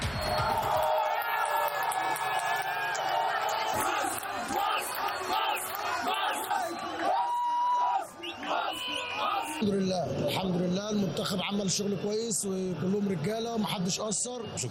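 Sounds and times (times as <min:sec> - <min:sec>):
Egyptian football fans chanting and shouting in Riyadh: 0:00.2 - 0:10.7
speech: 0:10.4 - 0:14.7.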